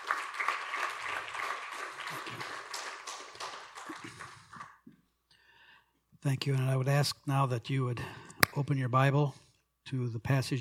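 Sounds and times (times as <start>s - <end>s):
church audience applauding to welcome a pastor: 0.0s - 4.4s
speech: 6.2s - 10.5s.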